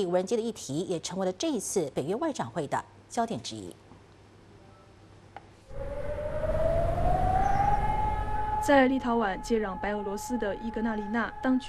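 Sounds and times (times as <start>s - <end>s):
speech: 0.0s - 3.8s, 8.6s - 11.6s
air raid siren: 5.7s - 11.6s
rumbling background: 5.7s - 11.6s.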